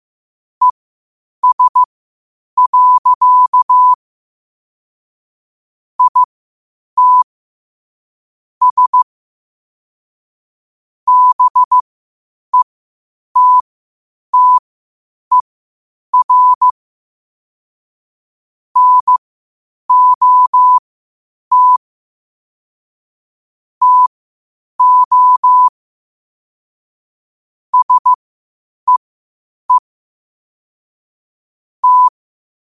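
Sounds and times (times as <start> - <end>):
morse code at 5 wpm: 1.4 - 1.9, 2.6 - 4.0, 6.0 - 6.3, 7.0 - 7.2, 8.6 - 9.0, 11.1 - 11.8, 13.4 - 13.6, 14.4 - 14.6, 16.2 - 16.7, 18.8 - 19.2, 19.9 - 20.8, 21.5 - 21.8, 23.8 - 24.1, 24.8 - 25.7, 27.8 - 28.2, 31.8 - 32.1.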